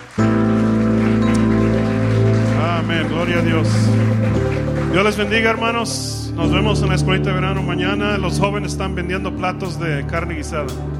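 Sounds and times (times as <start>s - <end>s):
audience applauding: 0.0s - 8.8s
speech: 3.2s - 10.9s.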